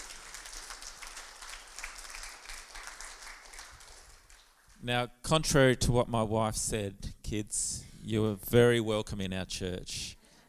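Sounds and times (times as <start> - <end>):
audience applause: 0.0 - 4.8
speech: 4.8 - 10.2.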